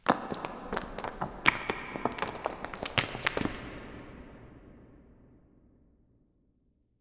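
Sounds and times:
rocks: 0.0 - 3.9.

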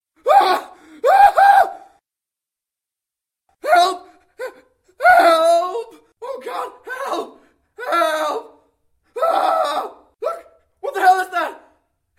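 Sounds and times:
person screaming: 0.2 - 2.0, 3.6 - 8.6, 9.2 - 11.3.

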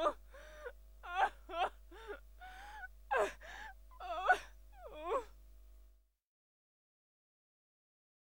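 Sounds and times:
woman sobbing: 0.0 - 5.3.

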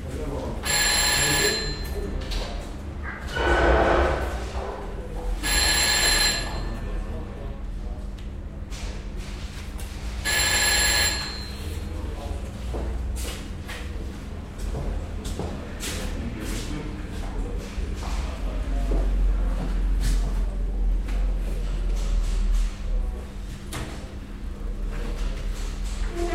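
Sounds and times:
police station ambience: 0.0 - 26.3.

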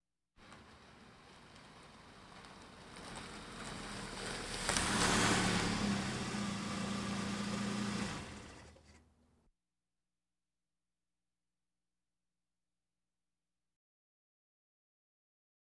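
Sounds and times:
various automobiles: 0.4 - 9.0.

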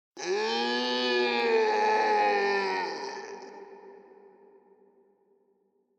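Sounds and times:
man lamenting: 0.2 - 3.6.

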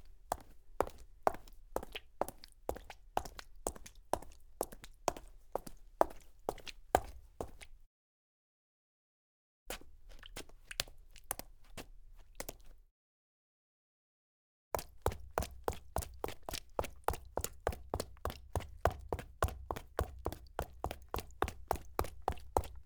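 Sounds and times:
foley footsteps of high heels on wet cement: 0.3 - 7.7, 14.8 - 22.8.

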